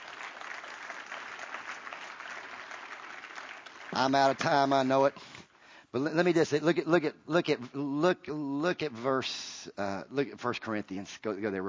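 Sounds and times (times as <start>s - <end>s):
audience clapping: 0.0s - 5.2s
speech: 3.9s - 11.6s.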